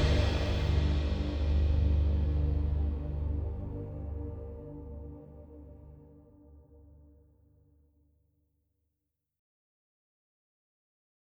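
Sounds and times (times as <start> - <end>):
orchestra playing: 0.0 - 6.4.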